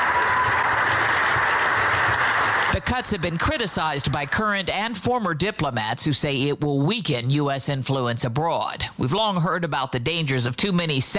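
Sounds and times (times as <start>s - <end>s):
applause for departing employees: 0.0s - 5.0s
speech: 2.8s - 11.1s.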